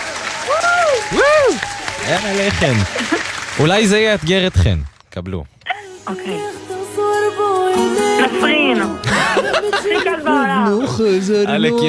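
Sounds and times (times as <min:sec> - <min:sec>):
voices calling or cheering: 0:00.0 - 0:03.2
audience clapping: 0:00.0 - 0:05.0
speech: 0:02.1 - 0:05.5, 0:06.1 - 0:06.6, 0:07.3 - 0:11.8
laughter: 0:02.4 - 0:03.4, 0:09.0 - 0:10.5.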